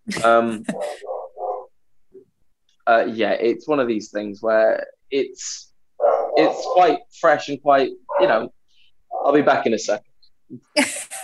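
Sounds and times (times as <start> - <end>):
speech: 0.1 - 1.1, 2.9 - 8.6, 9.2 - 11.2
dog woofing in the background: 0.7 - 1.7, 6.0 - 7.0, 8.1 - 8.5.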